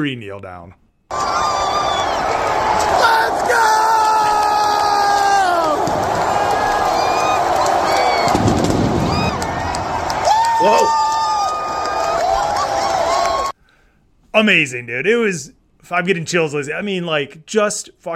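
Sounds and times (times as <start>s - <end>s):
speech: 0.0s - 3.8s, 10.6s - 11.0s, 14.4s - 18.1s
stadium crowd cheering at football game: 1.1s - 13.5s.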